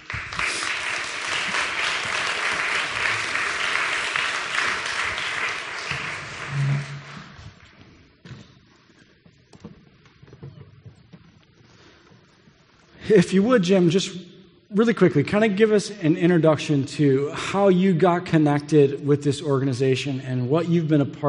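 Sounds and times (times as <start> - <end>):
audience applauding to welcome a speaker to the stage: 0.0 - 7.5
speech: 13.1 - 21.2.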